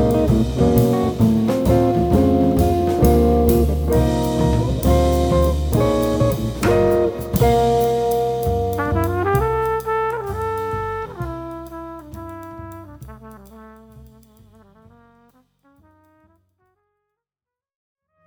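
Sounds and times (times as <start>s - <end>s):
musical riff: 0.0s - 10.0s.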